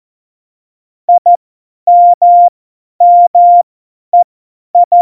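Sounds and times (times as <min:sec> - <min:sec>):
morse code CW: 0:01.1 - 0:04.9.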